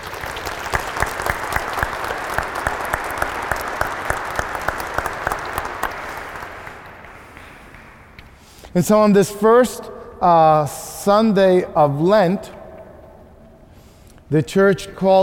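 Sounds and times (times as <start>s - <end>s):
round of applause: 0.0s - 8.4s
speech: 8.8s - 12.6s, 14.3s - 15.2s.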